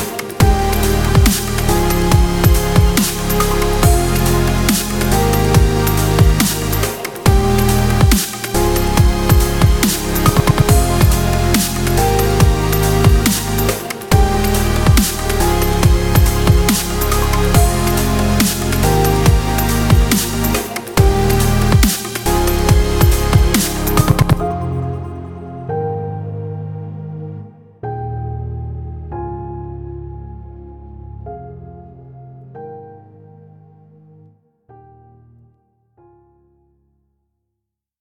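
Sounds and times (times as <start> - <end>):
inspiring dubstep music: 0.0 - 25.8.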